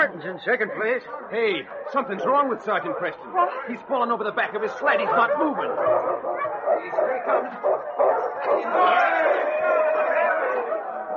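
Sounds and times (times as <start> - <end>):
speech: 0.0 - 10.2
excited dogs barking and yipping: 0.0 - 11.1
crowd cheering at sled race finish: 4.9 - 11.1.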